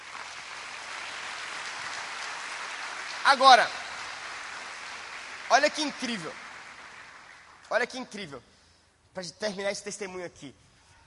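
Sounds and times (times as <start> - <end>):
audience applause: 0.0 - 7.7
speech: 3.3 - 3.8, 5.5 - 6.4, 7.7 - 8.5, 9.2 - 10.6.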